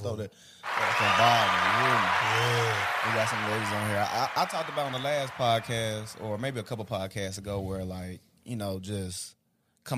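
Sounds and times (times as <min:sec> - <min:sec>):
speech: 0:00.0 - 0:09.9
hand clapping: 0:00.7 - 0:06.6.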